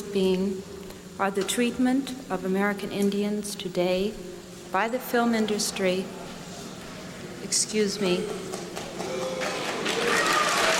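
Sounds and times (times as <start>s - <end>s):
speech: 0.1s - 6.3s, 7.5s - 8.6s
applause: 8.5s - 10.7s
audience booing: 8.8s - 10.7s.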